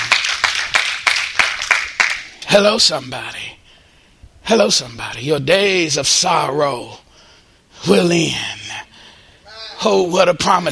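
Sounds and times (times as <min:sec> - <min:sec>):
audience clapping in rhythm: 0:00.0 - 0:02.3
speech: 0:02.5 - 0:03.5, 0:04.5 - 0:07.0, 0:07.8 - 0:08.6, 0:09.8 - 0:10.7.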